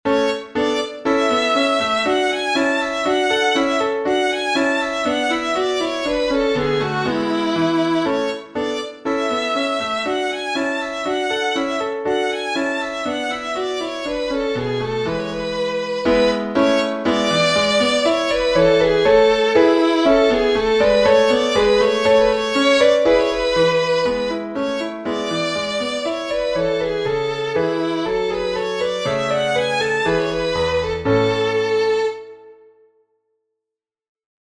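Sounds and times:
baroque dance music: 0.1s - 32.3s.

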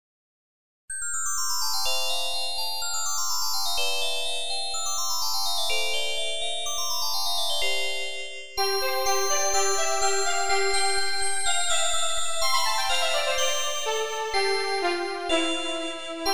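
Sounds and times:
glockenspiel: 0.9s - 16.3s
violin: 8.9s - 16.3s.

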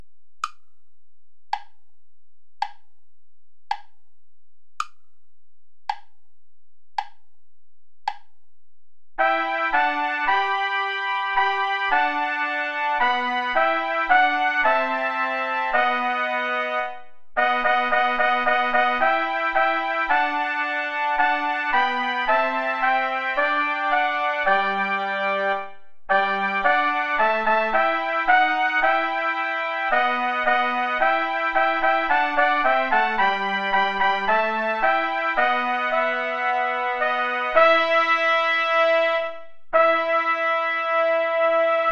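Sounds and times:
play-along backing music without trumpet: 9.2s - 41.9s.

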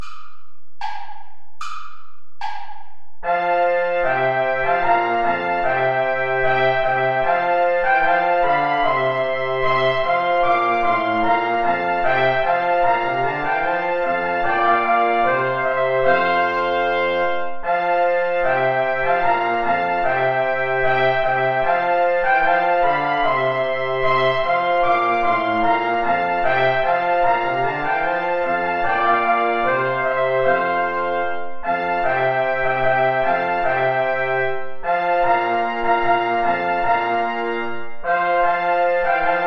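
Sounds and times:
play-along backing music without trombone: 0.0s - 39.4s.

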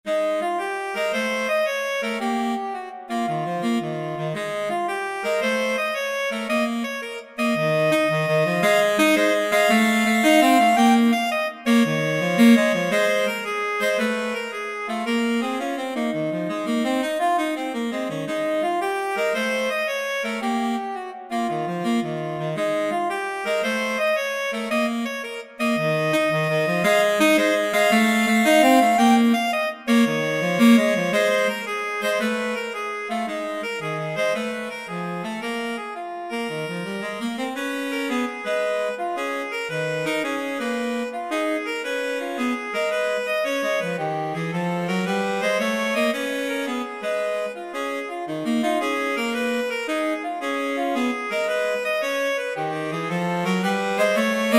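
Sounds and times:
blues duet for saxophones: 0.1s - 54.5s.

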